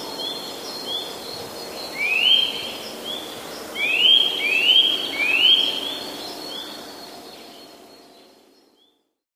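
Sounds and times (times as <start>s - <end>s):
Eurasian nuthatch calling with long upward-curled whistles in a March forest: 0.0s - 8.0s.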